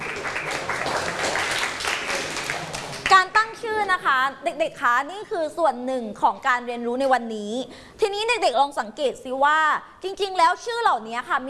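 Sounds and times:
children clapping for a classmate: 0.0s - 3.5s
speech: 4.0s - 11.4s.

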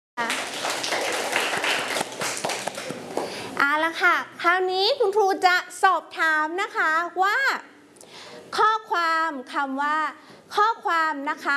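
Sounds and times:
children clapping for a classmate: 0.2s - 3.4s
speech: 3.6s - 7.7s, 8.4s - 11.5s.

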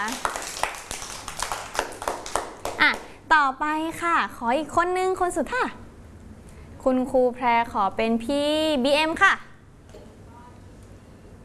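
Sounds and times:
speech: 0.0s - 0.5s, 2.8s - 5.8s, 6.8s - 9.5s
children clapping hands: 0.0s - 3.1s.

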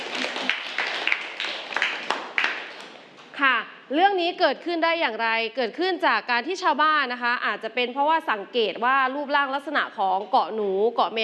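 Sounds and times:
classroom applause: 0.0s - 3.1s
speech: 3.9s - 11.2s.

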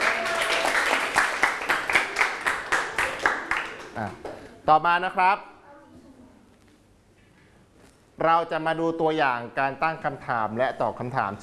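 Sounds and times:
group of students clapping in a classroom: 0.0s - 4.4s
speech: 4.0s - 6.0s, 8.2s - 11.4s.

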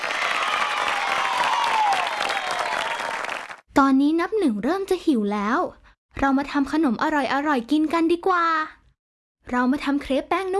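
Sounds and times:
group applauding: 0.0s - 3.6s
speech: 3.8s - 8.8s, 9.5s - 10.5s.

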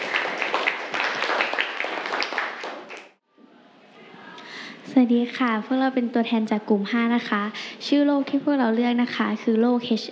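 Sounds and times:
crowd of students clapping: 0.0s - 3.2s
speech: 5.0s - 10.1s.

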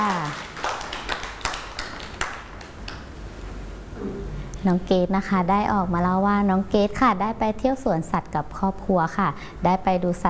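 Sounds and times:
children clapping hands: 0.0s - 3.1s
speech: 4.6s - 10.2s.

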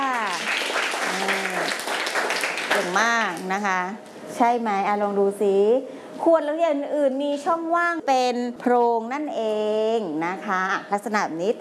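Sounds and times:
schoolchildren clapping for a classmate in class: 0.0s - 3.5s
speech: 3.0s - 11.5s.

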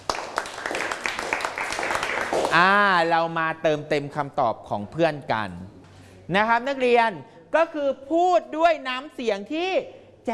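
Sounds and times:
classroom students clapping for a classmate: 0.0s - 2.8s
speech: 2.5s - 5.7s, 6.3s - 10.3s.

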